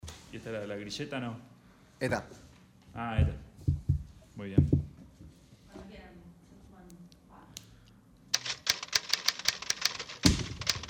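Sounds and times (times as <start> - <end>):
speech: 0.3 - 3.4, 4.4 - 4.8
keyboard keys clattering: 8.4 - 10.8.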